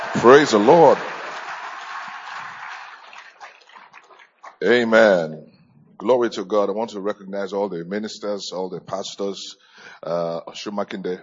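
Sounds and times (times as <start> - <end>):
audience clapping: 0.0 - 4.9
speech: 0.2 - 1.1, 4.6 - 11.2.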